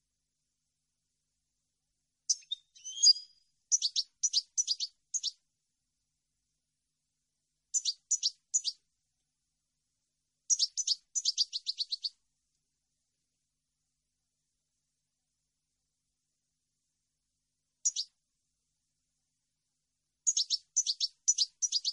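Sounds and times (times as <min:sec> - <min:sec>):
European goldfinch singing: 0:02.3 - 0:05.4, 0:07.7 - 0:08.8, 0:10.5 - 0:12.1, 0:17.8 - 0:18.1, 0:20.3 - 0:21.9.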